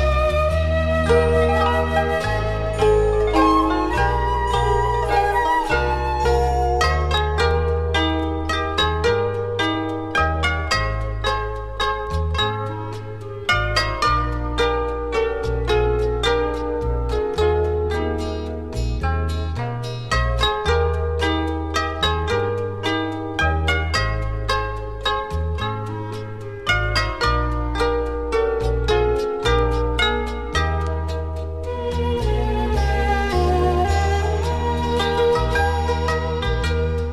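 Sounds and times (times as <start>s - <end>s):
orchestra: 0.0s - 8.2s, 31.6s - 37.1s
harp instrumental: 0.0s - 37.1s.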